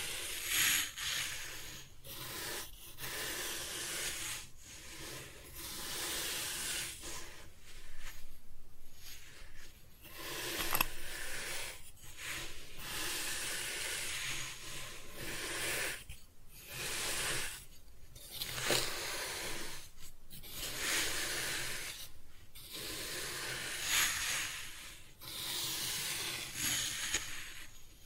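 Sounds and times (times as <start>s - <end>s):
kinetic sand being cut and scooped: 0.0s - 8.2s, 9.0s - 17.7s, 18.3s - 27.8s
faint steady hum: 0.0s - 28.0s.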